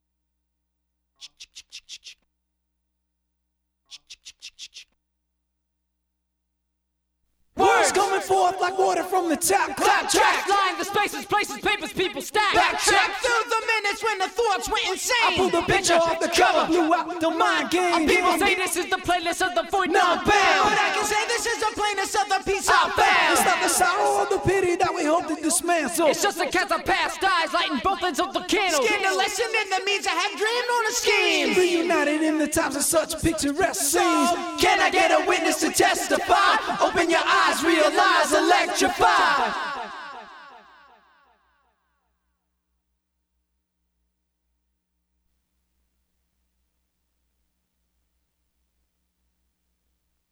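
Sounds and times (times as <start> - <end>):
a cappella singing: 7.6 - 29.6, 30.9 - 41.1.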